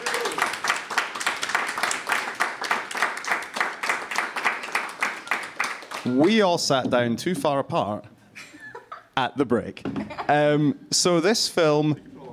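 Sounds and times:
small audience applause: 0:00.0 - 0:06.5
speech: 0:06.0 - 0:08.1, 0:09.2 - 0:12.1.

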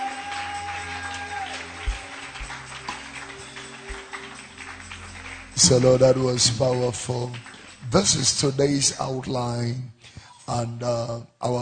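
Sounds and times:
audience clapping hands: 0:00.0 - 0:08.9
speech: 0:05.6 - 0:11.5.

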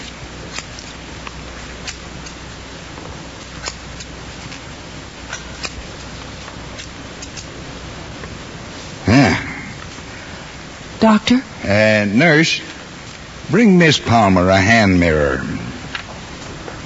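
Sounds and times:
steady hiss: 0:00.0 - 0:16.8
scissors snipping off a hospital patient's bandages: 0:00.5 - 0:01.0, 0:01.8 - 0:02.4, 0:03.5 - 0:04.6, 0:05.3 - 0:05.8, 0:06.8 - 0:07.5
speech: 0:11.0 - 0:12.7, 0:13.5 - 0:15.6.

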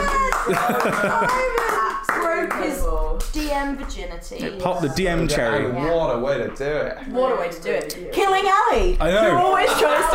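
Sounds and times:
applause: 0:00.0 - 0:02.7
voices talking and laughing: 0:00.0 - 0:10.1
speech: 0:00.5 - 0:01.7, 0:02.7 - 0:10.1.

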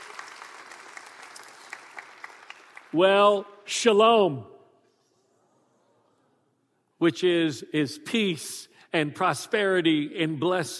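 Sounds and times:
audience applause welcoming a group from Opelousas: 0:00.0 - 0:03.0
speech: 0:02.9 - 0:04.5, 0:07.0 - 0:10.7.

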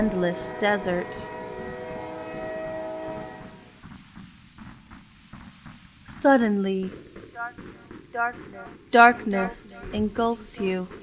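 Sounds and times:
speech: 0:00.0 - 0:01.4, 0:06.2 - 0:11.0
train whistle: 0:00.0 - 0:03.7
rail clacks: 0:00.0 - 0:11.0
train wheels rumbling on tracks: 0:00.0 - 0:11.0.

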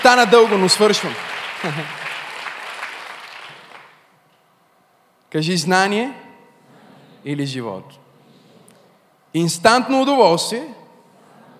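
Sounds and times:
speech: 0:00.0 - 0:02.0, 0:05.3 - 0:06.2, 0:07.2 - 0:08.0, 0:09.3 - 0:10.8
audience applauding: 0:00.0 - 0:04.0
laughter: 0:01.6 - 0:02.2.

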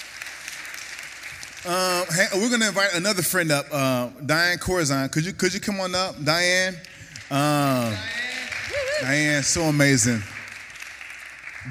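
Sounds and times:
audience clapping: 0:00.0 - 0:03.4, 0:05.6 - 0:11.6
speech: 0:01.6 - 0:08.2, 0:09.0 - 0:10.4.

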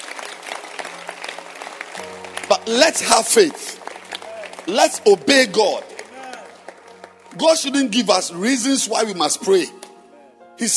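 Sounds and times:
crowd applause: 0:00.0 - 0:07.9
speech: 0:02.5 - 0:03.8, 0:04.7 - 0:05.9, 0:07.4 - 0:09.8, 0:10.6 - 0:10.7.

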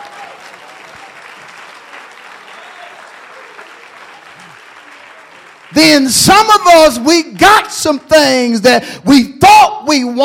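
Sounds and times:
audience clapping: 0:00.0 - 0:07.7
speech: 0:05.7 - 0:09.3, 0:09.9 - 0:10.2.

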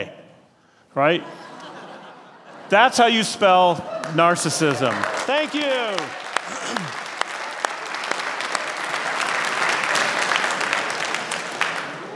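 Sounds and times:
speech: 0:01.0 - 0:01.4, 0:02.7 - 0:07.0
laughter: 0:01.1 - 0:05.1, 0:05.8 - 0:07.1
audience clapping: 0:03.4 - 0:12.1.

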